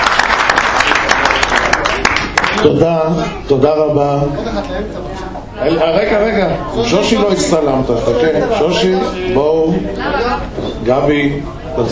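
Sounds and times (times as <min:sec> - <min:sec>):
audience applause: 0:00.0 - 0:02.8
speech: 0:02.6 - 0:11.9.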